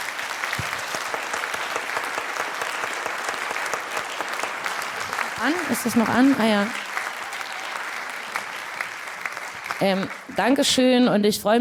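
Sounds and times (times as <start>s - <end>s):
loud audience applause: 0.0s - 10.9s
speech: 5.4s - 6.8s, 9.8s - 11.5s.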